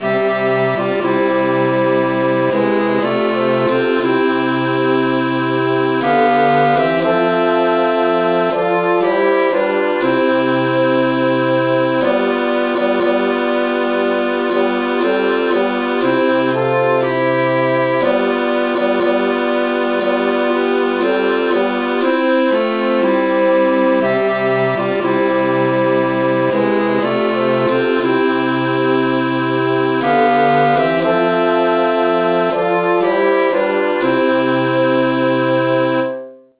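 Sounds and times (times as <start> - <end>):
traditional music in F: 0.0 - 36.5.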